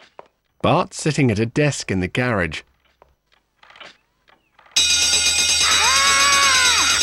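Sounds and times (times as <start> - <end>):
speech: 0.6 - 2.7
bell ringing: 4.8 - 7.0.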